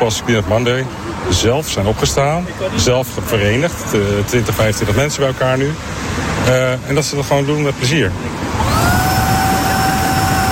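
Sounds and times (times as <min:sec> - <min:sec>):
speech: 0:00.0 - 0:08.8
vacuum cleaner running: 0:08.6 - 0:10.5.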